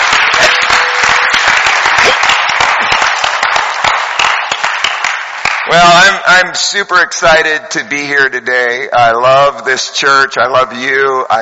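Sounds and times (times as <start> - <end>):
church audience applauding to welcome people back from vacation: 0.0 - 6.2
speech: 5.7 - 11.3.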